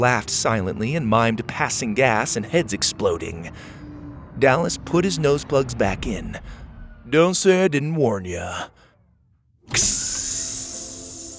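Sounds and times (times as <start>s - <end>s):
speech: 0.0s - 3.8s, 4.4s - 8.8s, 9.7s - 10.0s
sliding door hissing open: 9.7s - 11.3s.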